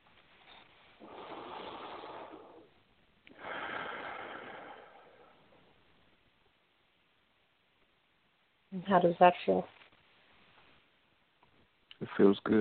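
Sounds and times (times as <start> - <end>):
deep breath during a guided relaxation exercise: 0.5 - 5.8
speech: 8.8 - 9.8, 12.1 - 12.6.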